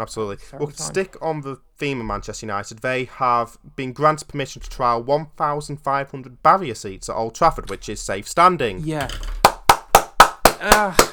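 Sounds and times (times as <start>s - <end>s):
speech: 0.0s - 9.4s, 10.6s - 11.1s
brief voiced sound: 0.6s - 1.0s
hands clapping: 9.4s - 11.1s.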